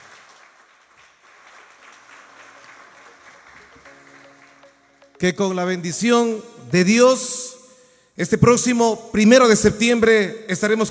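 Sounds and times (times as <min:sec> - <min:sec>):
audience applause: 0:00.0 - 0:05.2
speech: 0:05.2 - 0:07.5, 0:08.2 - 0:10.8.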